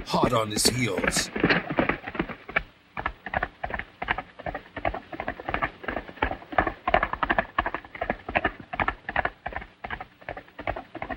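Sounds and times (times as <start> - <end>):
speech: 0.0 - 1.8
horse hooves galloping out of a ravine: 0.0 - 11.1.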